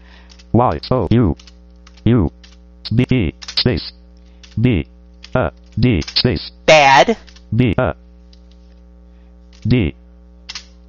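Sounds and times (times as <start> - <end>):
low mains hum: 0.0 - 10.8
speech: 0.6 - 1.5, 2.1 - 4.0, 4.6 - 8.0, 9.6 - 10.0
typing a song title on a computer keyboard: 1.4 - 2.6.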